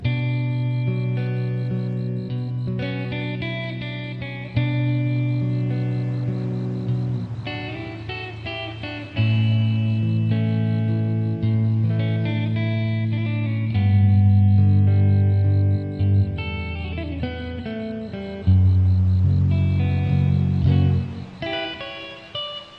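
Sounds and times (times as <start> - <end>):
romantic guitar music: 0.0 - 22.7.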